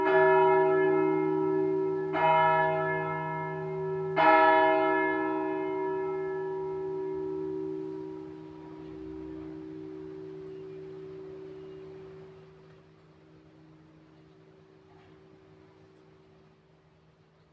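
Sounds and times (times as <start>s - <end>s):
church bell of a Reformed parish church ringing: 0.0s - 16.4s.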